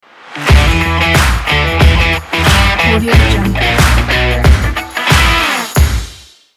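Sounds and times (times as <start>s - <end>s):
sport rock music logo: 0.4s - 6.3s.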